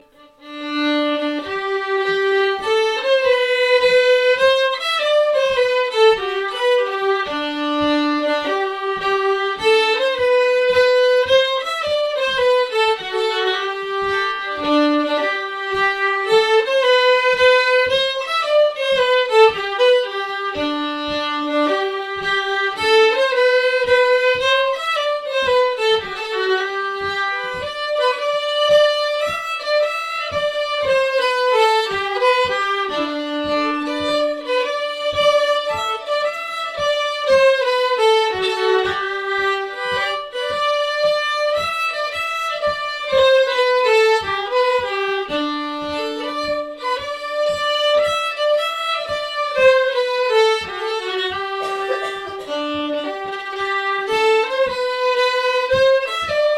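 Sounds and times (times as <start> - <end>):
Swedish polska folk tune: 0.0 - 56.5.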